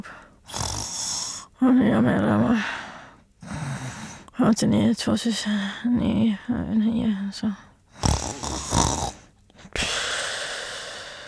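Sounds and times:
snoring: 0.5 - 1.5, 8.0 - 9.3
speech: 1.6 - 2.8, 4.4 - 7.7.

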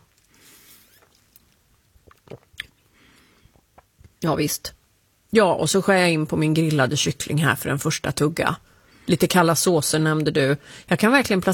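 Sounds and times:
faint hiss: 0.0 - 11.5
person gulping down a cocktail: 0.9 - 2.9, 3.5 - 4.0
speech: 4.2 - 11.5.

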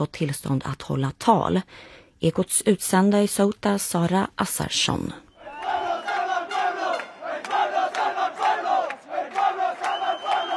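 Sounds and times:
speech: 0.0 - 5.2
protest crowd chanting slogans on Plaza de los Reyes: 5.3 - 10.5.

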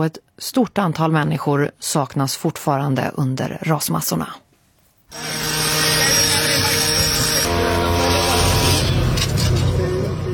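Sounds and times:
speech: 0.0 - 4.4, 5.1 - 5.5
motorized saws and drills cutting rubble: 5.1 - 10.1.

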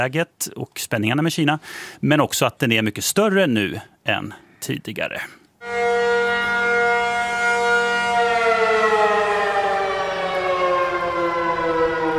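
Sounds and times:
speech: 0.0 - 5.9
civil defense all-clear siren: 5.6 - 12.1.

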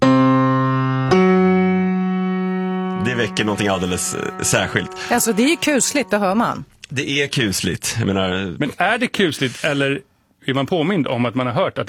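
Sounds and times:
musical interval played on a piano: 0.0 - 6.8
speech: 3.0 - 11.8.

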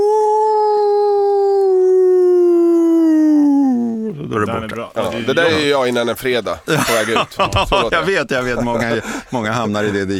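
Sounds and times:
person imitating a wolf howl: 0.0 - 4.4
laughter: 4.2 - 10.1
speech: 4.6 - 10.1.

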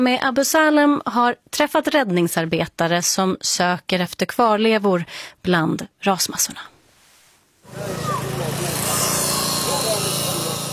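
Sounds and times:
speech: 0.0 - 6.7, 7.7 - 8.1
power saw cutting through iron rebar: 7.7 - 10.7.

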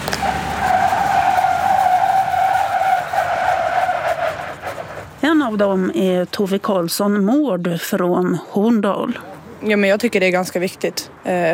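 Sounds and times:
car tires squealing while braking on ice: 0.0 - 5.2
speech: 5.5 - 11.5.

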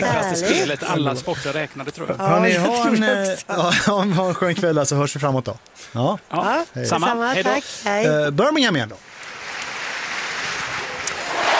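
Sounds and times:
speech: 0.0 - 9.1
stadium crowd cheering: 10.7 - 11.5.

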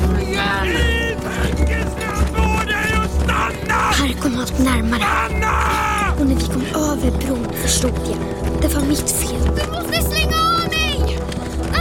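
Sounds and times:
people shouting: 0.0 - 6.3
horse galloping: 0.0 - 11.7
speech: 7.0 - 10.4.

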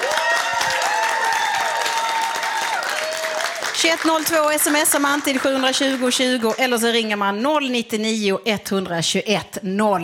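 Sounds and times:
audience applause: 0.0 - 6.4
speech: 3.8 - 10.0.

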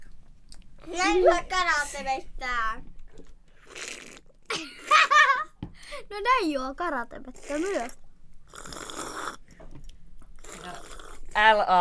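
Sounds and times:
speech: 0.8 - 2.9, 5.9 - 8.0, 11.4 - 11.7
person biting and chewing a crisp apple: 3.6 - 4.3, 7.4 - 9.4, 10.4 - 11.3.

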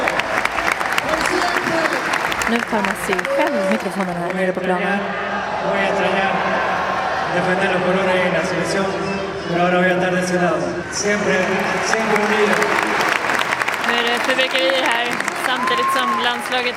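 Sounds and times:
stadium crowd applauding and cheering: 0.0 - 4.9, 11.0 - 16.7
speech: 2.7 - 6.6, 7.3 - 12.8, 14.3 - 16.7.

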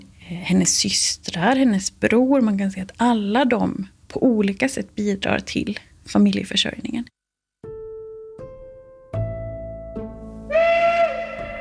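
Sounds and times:
speech: 0.3 - 7.2
factory whistle sounding: 10.5 - 11.5.

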